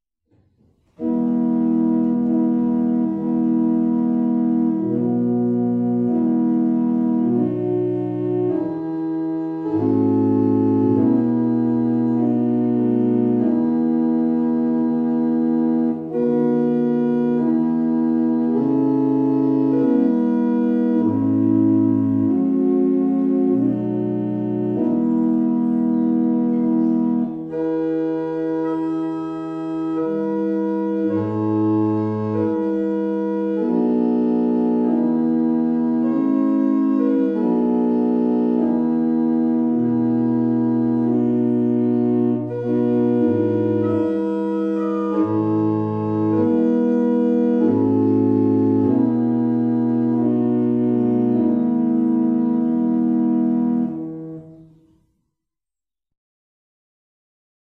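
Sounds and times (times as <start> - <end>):
barrel organ playing Irish music: 0.8 - 55.0.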